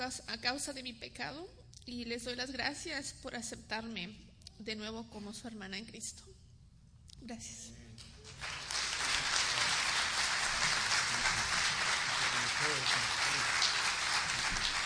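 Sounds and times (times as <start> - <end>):
speech: 0.0 - 6.4, 7.2 - 8.4, 12.6 - 13.6
loud applause: 8.2 - 14.8.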